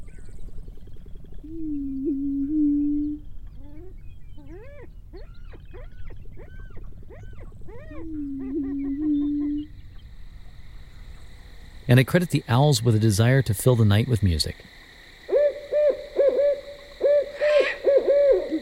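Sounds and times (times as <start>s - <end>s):
hen crooning: 1.4s - 18.5s
speech: 1.5s - 2.2s, 11.9s - 14.8s.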